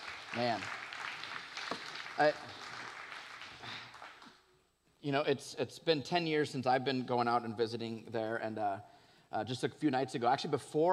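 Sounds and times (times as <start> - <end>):
church audience clapping: 0.0 - 4.4
speech: 0.4 - 0.8, 2.2 - 2.6, 5.0 - 10.9.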